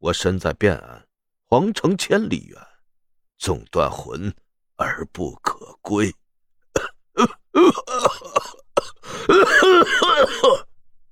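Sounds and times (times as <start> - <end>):
speech: 0.0 - 2.7, 3.4 - 6.2, 6.8 - 8.4
person coughing violently: 6.8 - 10.8.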